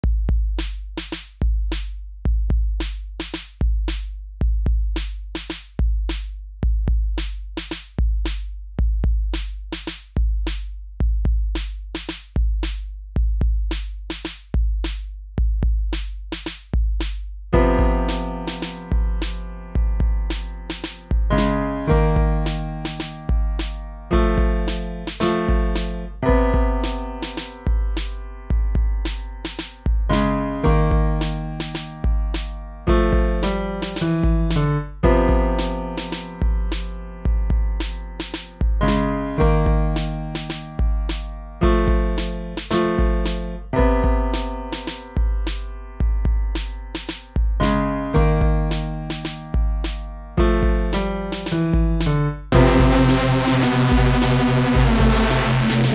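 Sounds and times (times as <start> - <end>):
instrumental music: 0.3 - 55.9.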